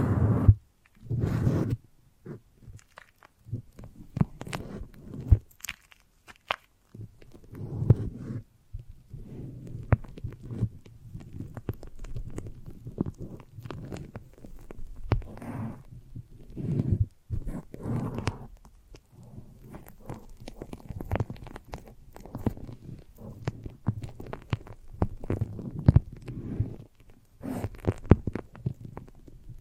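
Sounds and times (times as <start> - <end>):
foamy sticky massage squelchy rubbing: 0.0 - 2.8, 7.0 - 8.5, 9.1 - 28.4
sharp crackles and pops: 2.6 - 29.6.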